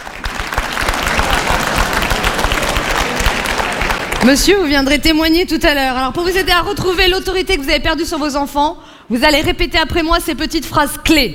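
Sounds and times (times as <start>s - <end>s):
audience applause: 0.0s - 4.4s
speech: 4.2s - 11.3s.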